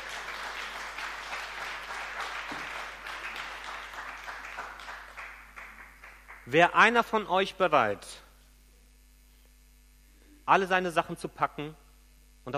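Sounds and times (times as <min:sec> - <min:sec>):
crowd applauding: 0:00.0 - 0:06.7
speech: 0:06.5 - 0:08.2, 0:10.5 - 0:11.8.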